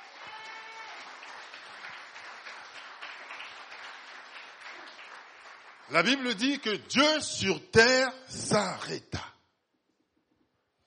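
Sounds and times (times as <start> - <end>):
high-pitched cheer: 0.0 - 1.3
audience applauding: 0.0 - 7.0
speech: 5.9 - 9.3.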